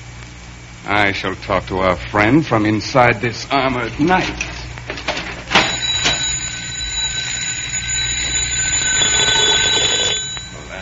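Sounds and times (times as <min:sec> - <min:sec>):
speech: 0:00.8 - 0:04.5
electric doorbell ringing: 0:05.5 - 0:10.7.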